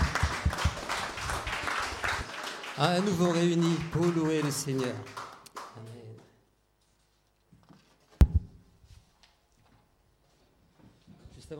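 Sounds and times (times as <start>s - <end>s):
audience applause: 0.0s - 5.9s
speech: 2.8s - 5.2s.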